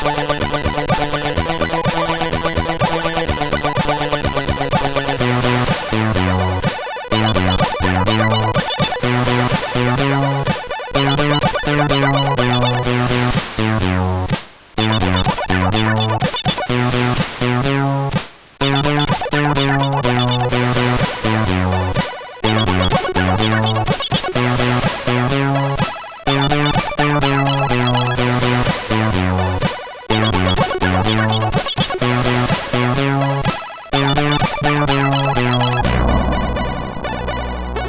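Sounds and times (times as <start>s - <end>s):
disco music on a CSG8580R5 sound chip: 0.0s - 13.9s, 14.8s - 17.0s, 17.6s - 37.8s.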